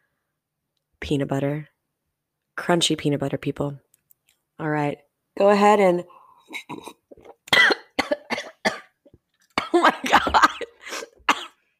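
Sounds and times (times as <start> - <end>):
speech: 1.1 - 1.7, 2.6 - 3.8, 4.6 - 7.0
person coughing after choking on coffee: 6.6 - 9.0, 9.6 - 11.6.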